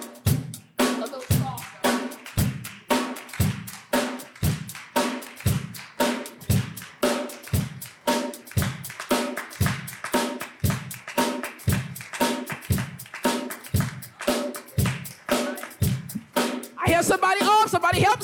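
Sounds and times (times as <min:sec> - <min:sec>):
rhythmic hand-clapping beat: 0:00.0 - 0:18.2.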